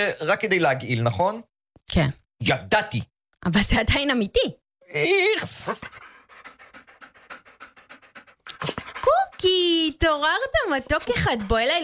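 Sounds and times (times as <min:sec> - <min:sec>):
speech: 0:00.0 - 0:06.1, 0:09.4 - 0:11.8
dog panting: 0:05.4 - 0:11.8.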